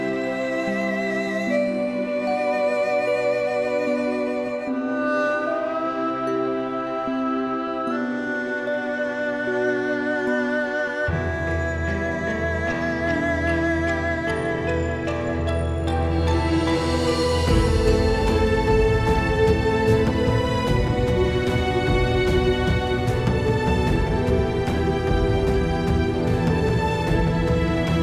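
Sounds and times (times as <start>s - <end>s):
erhu, traditional Chinese instrument, playing: 0.0s - 28.0s.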